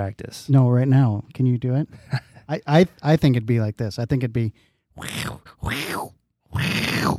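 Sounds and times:
speech: 0.0s - 7.1s
person vocally imitating an angry wolverine: 5.0s - 7.1s.

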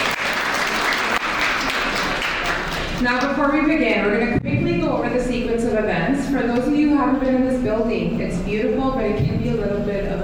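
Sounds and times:
audience applause: 0.0s - 3.0s
speech: 3.0s - 10.2s.

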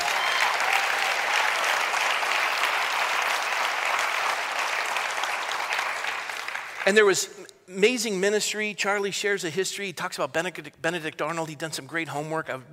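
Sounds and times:
audience applause: 0.0s - 7.1s
speech: 6.9s - 12.7s.

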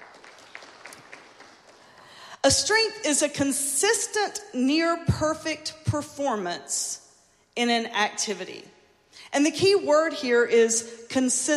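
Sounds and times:
audience clapping: 0.0s - 2.2s
speech: 2.4s - 7.0s, 7.6s - 8.7s, 9.3s - 11.5s.

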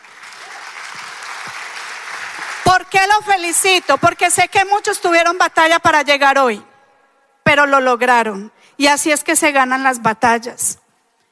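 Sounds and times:
audience applause: 0.0s - 2.7s
speech: 2.7s - 6.7s, 7.5s - 10.8s.

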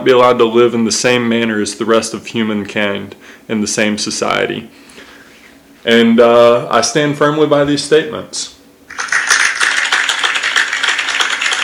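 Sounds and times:
speech: 0.0s - 5.0s, 5.8s - 9.1s
audience clapping in approval: 8.9s - 11.6s.

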